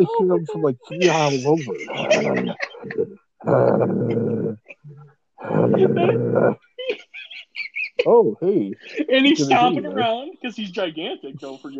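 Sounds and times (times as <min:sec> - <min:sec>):
laughter: 0:00.0 - 0:03.1, 0:05.6 - 0:10.1
speech: 0:00.0 - 0:04.6, 0:05.6 - 0:06.7, 0:08.0 - 0:11.7
voice imitating a monster growl: 0:01.9 - 0:04.6, 0:05.4 - 0:06.6.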